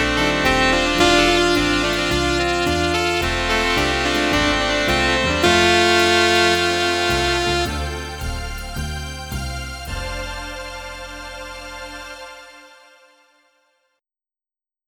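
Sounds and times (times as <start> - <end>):
saxophone: 0.0 - 10.8.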